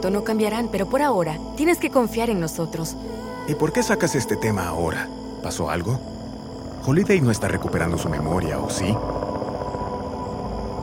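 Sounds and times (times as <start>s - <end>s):
speech: 0.0s - 6.2s, 6.8s - 9.2s
helicopter droning: 2.9s - 10.8s.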